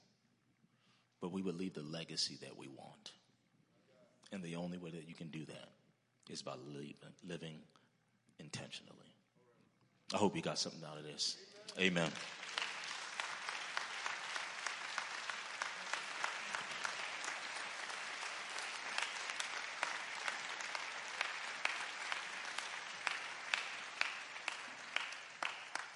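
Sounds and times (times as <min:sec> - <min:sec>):
speech: 0:01.2 - 0:03.2, 0:04.3 - 0:07.8, 0:08.4 - 0:09.2, 0:10.1 - 0:12.4
audience applauding: 0:11.6 - 0:25.9.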